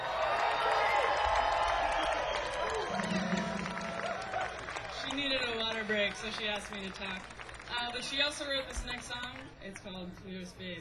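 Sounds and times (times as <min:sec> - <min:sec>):
audience applause and cheering for vocalist: 0:00.0 - 0:07.8
speech: 0:06.1 - 0:10.7.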